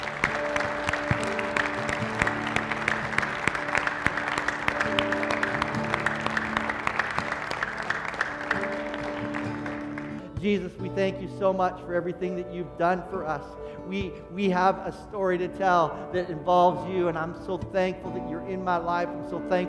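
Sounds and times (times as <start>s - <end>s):
audience applause: 0.0s - 10.3s
speech: 10.4s - 19.6s.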